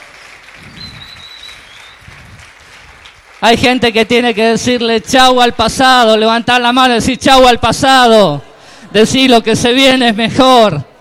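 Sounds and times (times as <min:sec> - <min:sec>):
audience applauding: 0:00.0 - 0:04.8
speech: 0:03.4 - 0:10.9.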